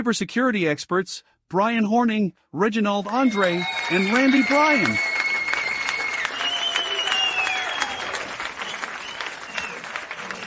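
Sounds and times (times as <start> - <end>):
speech: 0.0 - 5.1
whistle: 3.1 - 9.9
live studio audience applause: 3.1 - 10.4.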